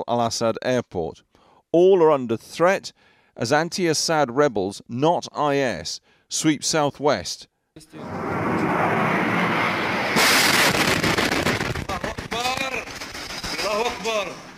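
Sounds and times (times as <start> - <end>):
speech: 0.0 - 9.3
steady roar: 7.9 - 11.0
airstrike explosion in Syria: 7.9 - 13.7
sharp cracks and bangs: 8.2 - 14.5.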